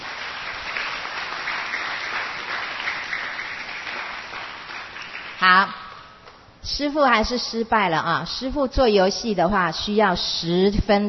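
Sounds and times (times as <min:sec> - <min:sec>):
audience applause: 0:00.0 - 0:05.4
speech: 0:05.4 - 0:05.8, 0:06.6 - 0:11.0.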